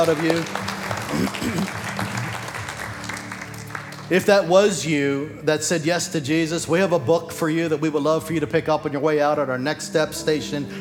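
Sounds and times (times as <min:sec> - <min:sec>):
speech: 0:00.0 - 0:02.2, 0:04.1 - 0:10.7
audience applause: 0:00.0 - 0:04.4.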